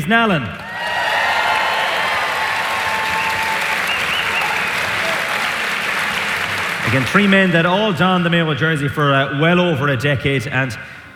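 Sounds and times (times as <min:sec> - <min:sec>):
speech: 0:00.0 - 0:00.6, 0:06.9 - 0:11.1
audience applause: 0:00.6 - 0:07.8.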